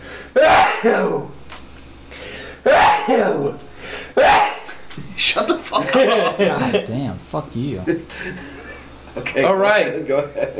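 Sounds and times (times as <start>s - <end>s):
person sneezing: 0.4s - 1.1s, 2.7s - 5.0s
speech: 0.4s - 1.4s, 2.6s - 3.6s, 5.2s - 8.6s, 9.2s - 10.5s
laughter: 5.2s - 10.5s.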